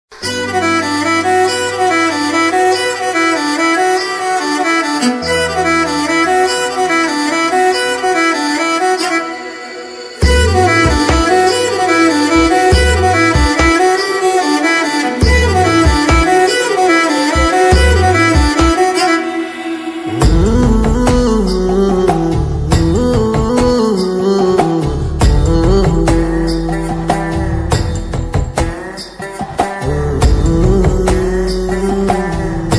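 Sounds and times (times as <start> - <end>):
heart touching background music: 0.2 - 32.7.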